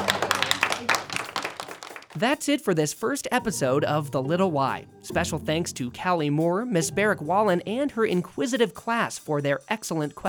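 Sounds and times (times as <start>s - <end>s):
class applauding: 0.0s - 2.2s
speech: 2.2s - 10.2s.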